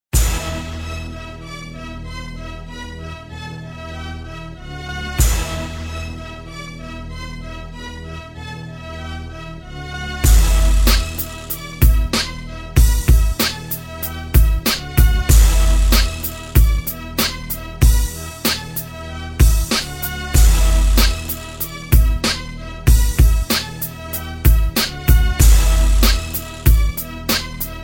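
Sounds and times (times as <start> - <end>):
hip hop beat: 0.1 - 1.6, 5.1 - 6.7, 10.2 - 27.8.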